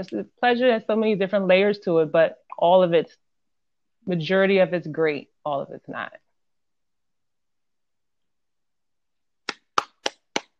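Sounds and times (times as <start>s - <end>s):
speech: 0.0s - 3.2s, 4.0s - 6.2s
person clapping hands: 9.4s - 10.5s.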